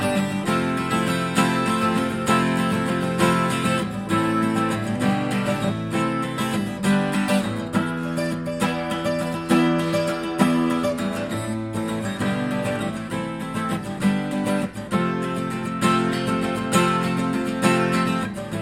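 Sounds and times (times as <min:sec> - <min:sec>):
acoustic 12 string guitar: 0:00.0 - 0:18.6.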